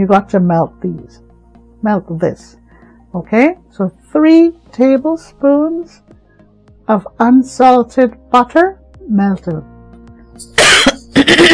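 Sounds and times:
speech: 0:00.0 - 0:01.2, 0:01.8 - 0:06.2, 0:06.9 - 0:09.7, 0:10.4 - 0:11.5
throat clearing: 0:10.6 - 0:11.5.

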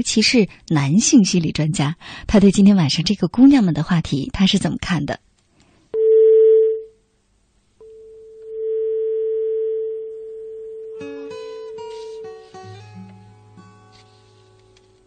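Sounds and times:
speech: 0:00.0 - 0:05.2
long telephone dial-line hum: 0:06.0 - 0:06.9, 0:07.8 - 0:12.4
steady telephone tone: 0:06.0 - 0:06.9, 0:07.8 - 0:12.4.

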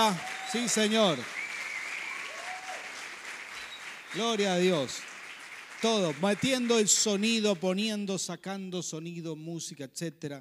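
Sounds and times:
speech: 0:00.0 - 0:01.4, 0:04.1 - 0:05.1, 0:05.8 - 0:10.4
gliding cheer: 0:00.0 - 0:07.2
crowd applause: 0:00.0 - 0:07.6
thin high whistle: 0:00.1 - 0:02.8, 0:03.5 - 0:04.4.

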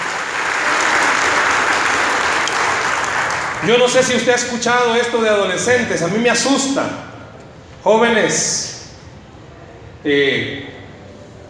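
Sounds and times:
audience applauding: 0:00.0 - 0:04.2
speech: 0:03.6 - 0:07.1, 0:07.8 - 0:08.7, 0:10.0 - 0:10.7.

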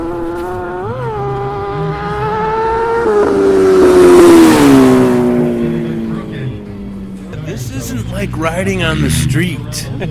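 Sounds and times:
car engine whining while spinning donuts on a frozen lake: 0:00.0 - 0:10.0
speech: 0:08.2 - 0:10.0.

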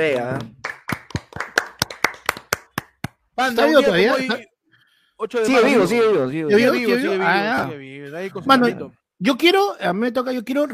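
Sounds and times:
speech: 0:00.0 - 0:00.6, 0:03.4 - 0:04.5, 0:05.2 - 0:10.7
hand clapping: 0:00.0 - 0:03.4.

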